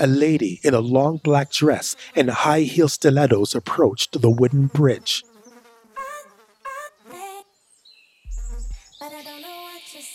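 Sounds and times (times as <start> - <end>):
speech: 0.0 - 5.3
swarming gnats and horseflies buzzing: 0.0 - 10.1
low thump: 8.3 - 8.9.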